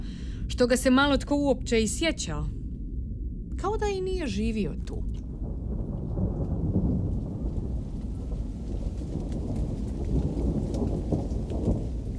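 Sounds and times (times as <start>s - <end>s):
speech: 0.6s - 2.6s, 3.6s - 5.2s
thunder: 5.1s - 12.1s.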